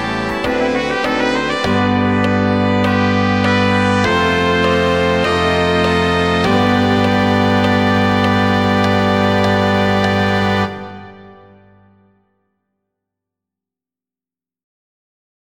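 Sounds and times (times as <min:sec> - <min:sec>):
guide track: 0:00.0 - 0:12.0.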